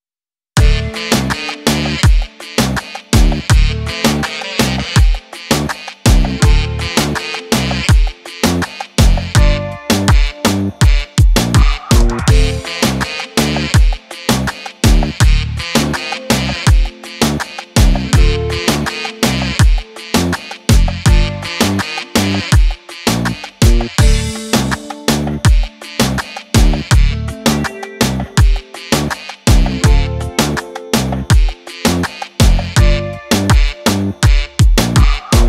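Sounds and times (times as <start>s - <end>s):
Balkan instrumental music: 0.6s - 35.4s.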